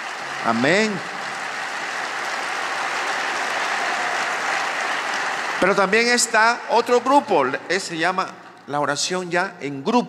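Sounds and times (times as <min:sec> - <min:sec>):
audience applause: 0:00.0 - 0:07.2
speech: 0:00.4 - 0:01.1, 0:05.6 - 0:10.0.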